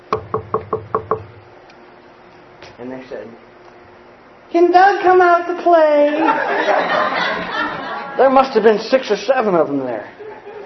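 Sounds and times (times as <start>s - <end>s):
knocking on a front door: 0.1s - 1.4s
speech: 2.8s - 3.5s, 4.5s - 10.2s
laughter: 5.9s - 8.6s, 10.1s - 10.6s.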